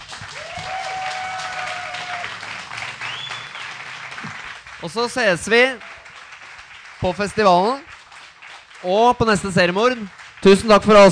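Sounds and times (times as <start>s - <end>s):
audience applause: 0.0s - 11.0s
faint whistles from the crowd: 0.4s - 4.1s
speech: 4.8s - 5.9s, 7.0s - 7.9s, 8.8s - 11.0s.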